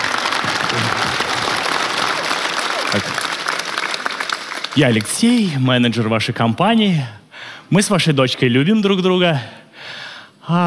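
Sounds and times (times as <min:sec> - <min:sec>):
audience applause: 0:00.0 - 0:05.6
speech: 0:03.0 - 0:03.2, 0:04.8 - 0:10.6.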